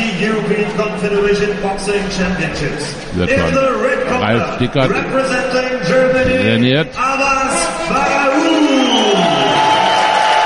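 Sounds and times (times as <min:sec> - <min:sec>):
speech: 0:00.2 - 0:08.8
large crowd applauding and cheering: 0:08.1 - 0:10.4
voice-like whoop: 0:08.3 - 0:10.4.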